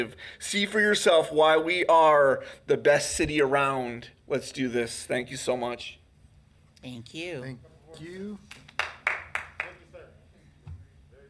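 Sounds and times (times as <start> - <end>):
speech: 0.0 - 6.0, 6.8 - 8.6
applause at council meeting: 8.5 - 9.8.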